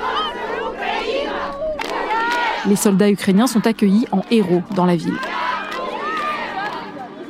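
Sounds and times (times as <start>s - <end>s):
excited voices shouting and crying out with joy: 0.0s - 2.7s, 4.2s - 7.1s
crowd cheering in the central square of Kherson after liberation: 0.0s - 7.2s
crowd applauding in a liberated city square: 1.5s - 7.2s
speech: 2.6s - 5.3s.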